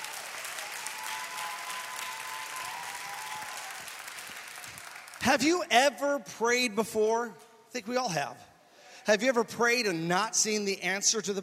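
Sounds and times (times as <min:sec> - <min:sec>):
crowd applauding: 0:00.0 - 0:05.6
speech: 0:05.3 - 0:11.4.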